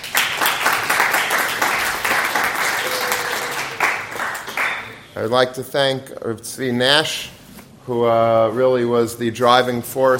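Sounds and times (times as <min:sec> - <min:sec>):
audience applause: 0:00.0 - 0:05.0
speech: 0:05.2 - 0:10.1.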